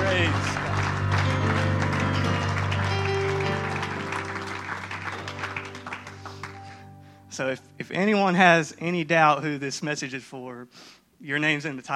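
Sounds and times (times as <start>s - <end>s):
audience applause: 0.0s - 6.8s
speech: 7.4s - 11.9s.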